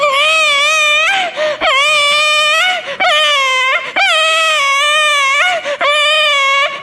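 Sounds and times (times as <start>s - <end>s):
infant crying: 0.0s - 6.8s.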